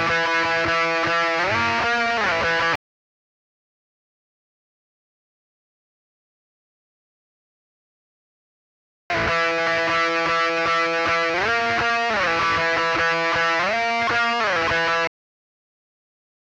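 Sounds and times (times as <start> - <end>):
guitar solo: 0.0 - 2.8, 9.1 - 15.1.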